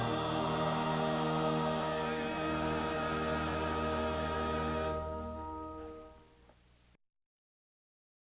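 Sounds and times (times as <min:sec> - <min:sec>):
vocal quartet singing a Sanctus: 0:00.0 - 0:06.2.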